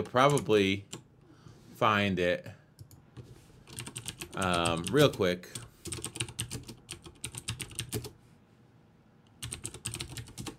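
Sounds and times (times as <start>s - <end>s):
speech: 0.0s - 1.0s, 1.8s - 2.6s, 4.4s - 5.6s
rapid typing on a computer keyboard searching for an article online: 0.0s - 1.1s, 3.6s - 8.2s, 9.3s - 10.5s.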